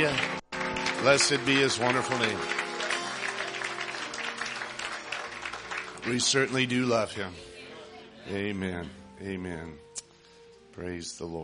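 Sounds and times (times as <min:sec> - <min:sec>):
speech: 0:00.0 - 0:00.3, 0:01.0 - 0:02.6, 0:06.0 - 0:07.5, 0:08.3 - 0:09.9, 0:10.8 - 0:11.4
church congregation clapping in praise during a worship service: 0:00.0 - 0:07.1.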